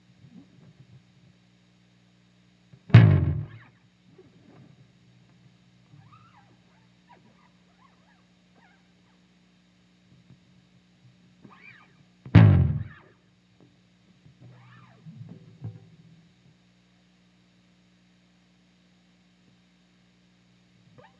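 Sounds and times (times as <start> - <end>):
bass slide: 3.0 - 3.6, 12.4 - 13.0.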